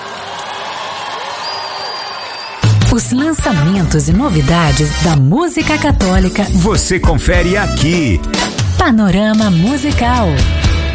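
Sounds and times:
crowd applause and cheering for Our Lady at a Catholic gathering: 0.0 - 3.8
speech: 2.9 - 10.6.

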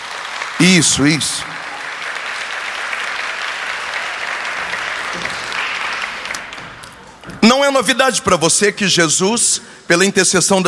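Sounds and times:
audience applause: 0.0 - 7.2
speech: 0.6 - 1.6, 7.4 - 10.6.

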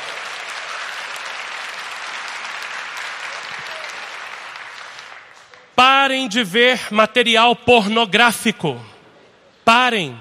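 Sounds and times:
audience applause: 0.0 - 5.7
speech: 6.1 - 8.9, 9.6 - 10.1.

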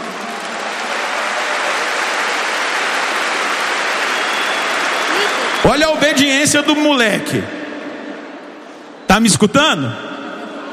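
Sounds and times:
crowd clapping: 0.0 - 6.6
speech: 5.6 - 7.6, 9.2 - 10.1.

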